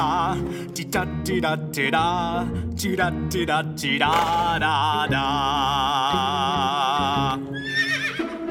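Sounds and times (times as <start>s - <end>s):
speech: 0.0s - 6.8s
frightened young horse neighing: 7.6s - 8.4s.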